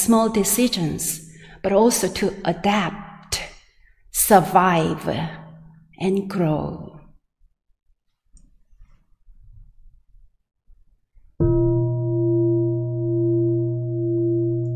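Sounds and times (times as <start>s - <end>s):
speech: 0.0s - 3.4s, 4.2s - 5.4s, 6.0s - 6.9s
gong being struck: 11.4s - 14.7s.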